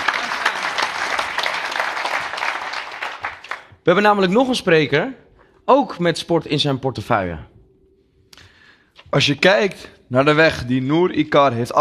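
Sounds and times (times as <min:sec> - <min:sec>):
audience applause: 0:00.0 - 0:03.8
speech: 0:03.9 - 0:07.5, 0:09.1 - 0:11.7.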